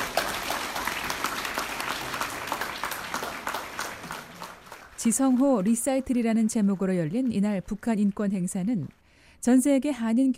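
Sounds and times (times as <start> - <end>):
standing ovation applause: 0.0 - 8.2
speech: 5.0 - 10.3.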